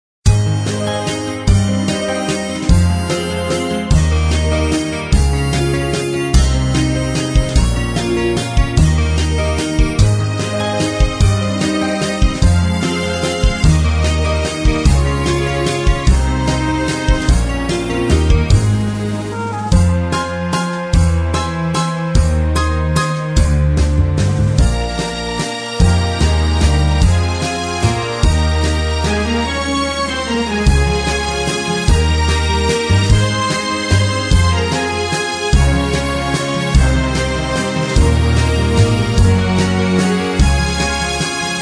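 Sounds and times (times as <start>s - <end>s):
instrumental kids TV theme music: 0.3s - 41.6s.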